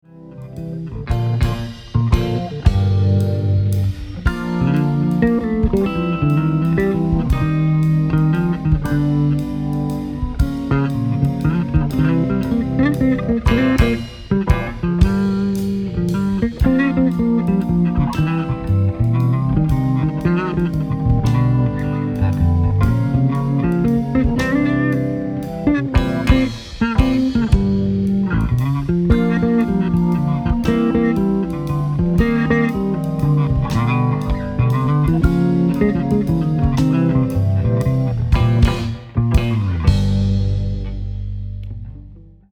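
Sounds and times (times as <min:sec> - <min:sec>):
bass solo: 0:00.0 - 0:42.5.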